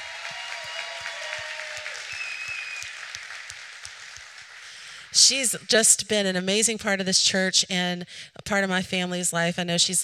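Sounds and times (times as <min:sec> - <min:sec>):
audience applause: 0:00.0 - 0:05.0
speech: 0:05.1 - 0:10.0.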